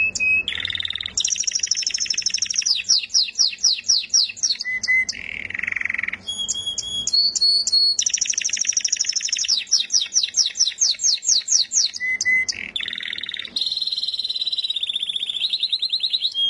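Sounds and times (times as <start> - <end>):
contest-winning canary singing whistles and buzzy trill: 0.0 - 16.4.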